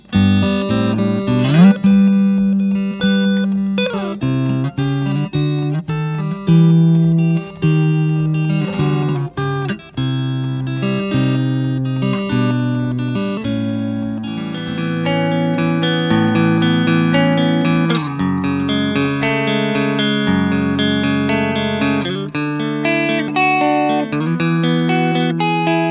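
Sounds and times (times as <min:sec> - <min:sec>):
Fender Telecaster electric guitar: 0:00.0 - 0:25.8.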